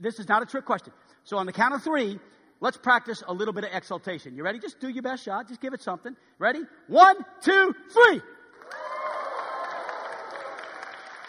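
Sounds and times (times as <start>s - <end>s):
speech: 0.0s - 8.4s
crowd clapping: 8.5s - 11.2s.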